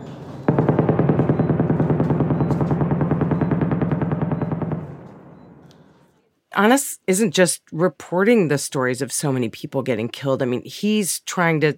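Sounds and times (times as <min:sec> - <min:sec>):
automatic gunfire during intense fighting in southern Gaza: 0:00.5 - 0:05.6
speech: 0:06.6 - 0:11.7.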